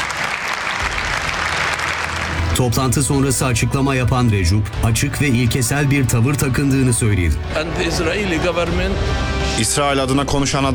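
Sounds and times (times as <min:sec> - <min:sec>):
applause in a congress hall for the Palestinian president: 0:00.0 - 0:02.8
speech: 0:02.6 - 0:10.7.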